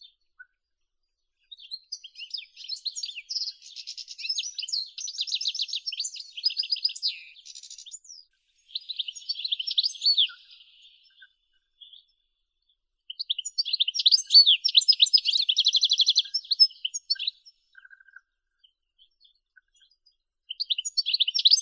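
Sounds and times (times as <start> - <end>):
goldfinch Carduelis carduelis singing: 1.8 - 11.1, 13.2 - 17.4, 20.6 - 21.6.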